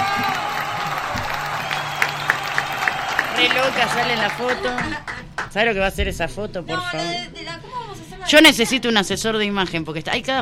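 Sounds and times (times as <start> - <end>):
people cheering at a lively gathering with a rock band: 0.0 - 5.3
audience applause at a lively gathering with a rock band: 0.0 - 5.5
speech: 3.4 - 7.6, 8.3 - 10.4.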